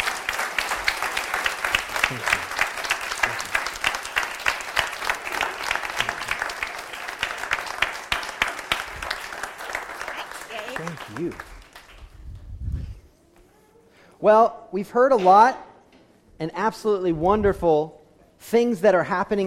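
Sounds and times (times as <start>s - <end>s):
audience applause: 0.0s - 12.1s
speech: 2.1s - 2.4s, 14.2s - 15.6s, 16.4s - 19.4s.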